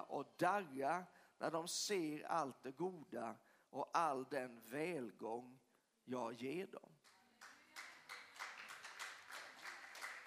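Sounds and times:
speech: 0:00.1 - 0:07.2
faint audience clapping: 0:07.0 - 0:10.2.

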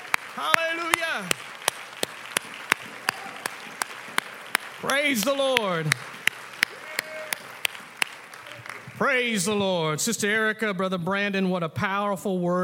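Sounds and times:
audience hand clapping: 0:00.0 - 0:09.6
speech: 0:00.4 - 0:00.6, 0:01.2 - 0:01.5, 0:04.8 - 0:06.1, 0:09.0 - 0:12.6.

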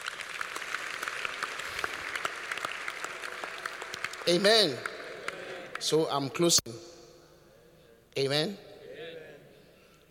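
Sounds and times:
audience clapping hands for the church: 0:00.0 - 0:06.2
speech: 0:04.2 - 0:04.9, 0:05.8 - 0:06.9, 0:08.2 - 0:08.7.

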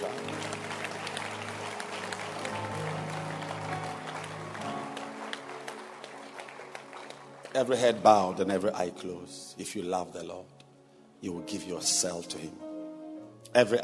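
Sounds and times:
audience clapping hands: 0:00.0 - 0:09.2
speech: 0:07.6 - 0:10.6, 0:11.2 - 0:12.7, 0:13.5 - 0:13.8.

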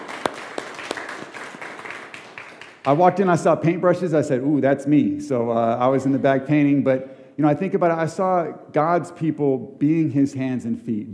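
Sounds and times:
faint steady clapping from a gathering: 0:00.0 - 0:03.1
speech: 0:02.8 - 0:11.1.

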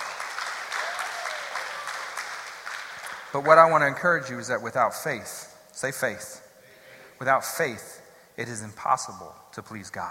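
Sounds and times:
audience clapping: 0:00.0 - 0:04.0
speech: 0:03.3 - 0:06.4, 0:07.2 - 0:10.0.

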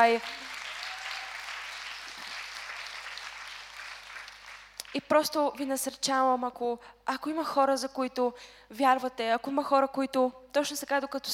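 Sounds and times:
speech: 0:00.0 - 0:00.4, 0:04.9 - 0:11.3
audience clapping: 0:00.0 - 0:05.0.

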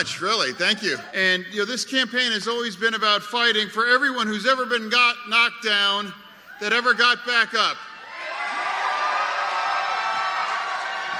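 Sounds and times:
speech: 0:00.0 - 0:07.9
large crowd applause at rally: 0:08.0 - 0:11.1.

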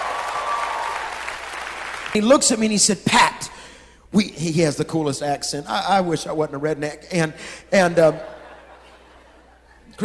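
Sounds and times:
audience clapping: 0:00.0 - 0:02.2
speech: 0:02.1 - 0:08.4
laughter: 0:07.9 - 0:10.0.

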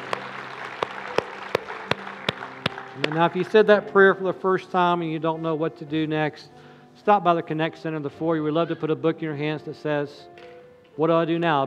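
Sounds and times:
audience hand clapping: 0:00.0 - 0:03.8
speech: 0:03.0 - 0:11.6.

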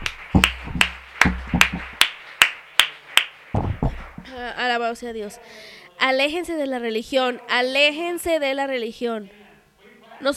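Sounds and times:
audience applause: 0:00.0 - 0:04.3
speech: 0:04.4 - 0:09.4.

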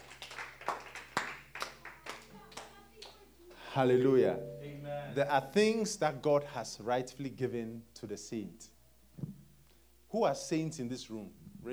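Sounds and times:
audience clapping hands: 0:00.0 - 0:03.3
speech: 0:03.8 - 0:08.8, 0:10.1 - 0:11.7.

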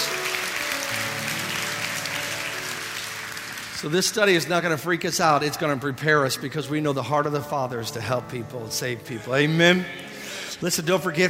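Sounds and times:
audience applause and hand clapping: 0:00.0 - 0:06.2
speech: 0:03.8 - 0:11.2.

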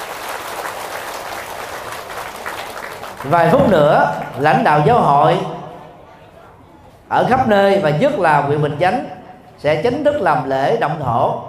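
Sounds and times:
applause: 0:00.0 - 0:04.9
speech: 0:03.2 - 0:05.6, 0:07.1 - 0:11.4.

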